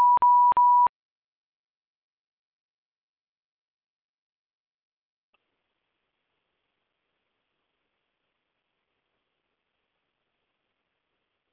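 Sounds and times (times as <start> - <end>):
phone beeps on muting: 0.0 - 0.9.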